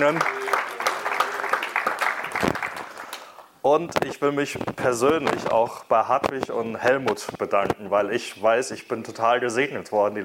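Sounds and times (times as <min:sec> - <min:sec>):
speech: 0:00.0 - 0:00.4, 0:03.6 - 0:10.2
audience applause: 0:00.0 - 0:03.4.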